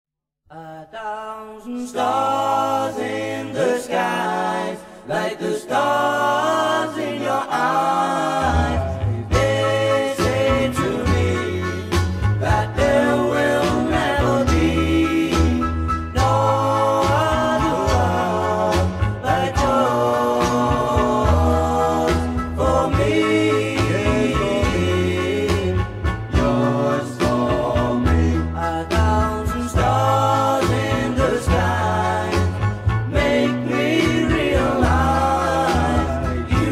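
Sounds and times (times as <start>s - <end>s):
doo wop singing: 0.5s - 36.7s.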